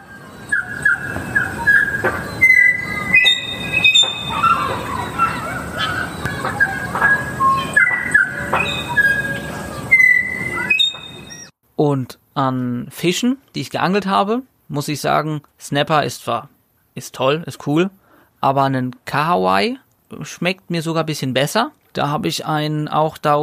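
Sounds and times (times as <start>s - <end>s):
tui bird calling with whistles, clicks, creaks and rasping notes: 0.0s - 11.5s
speech: 2.0s - 2.3s, 12.0s - 23.4s.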